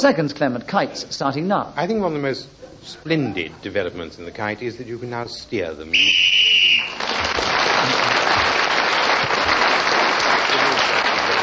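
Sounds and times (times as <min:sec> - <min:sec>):
speech: 0:00.0 - 0:06.4
game whistle blast: 0:05.9 - 0:07.0
applause: 0:06.8 - 0:11.4.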